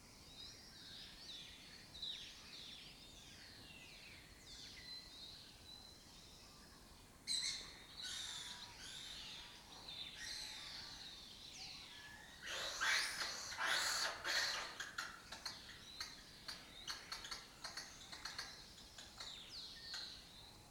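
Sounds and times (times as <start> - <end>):
lesser kestrels calling: 7.3 - 20.3.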